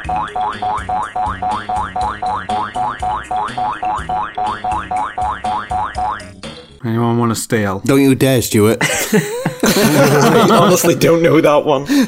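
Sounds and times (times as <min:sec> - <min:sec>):
bouncy electronic video game tune with springy boing notes: 0:00.0 - 0:06.6
speech: 0:00.1 - 0:05.4, 0:06.9 - 0:12.0
laughter: 0:08.8 - 0:11.4.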